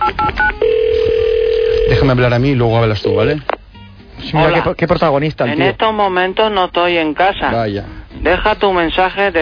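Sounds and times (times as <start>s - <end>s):
steady continuous phone tone: 0.2s - 2.1s, 3.0s - 3.4s
speech: 2.0s - 3.5s, 4.2s - 9.3s.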